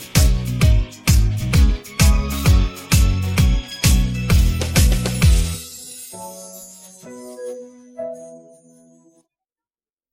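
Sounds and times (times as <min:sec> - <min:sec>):
instrumental logo jingle: 0:00.0 - 0:09.2.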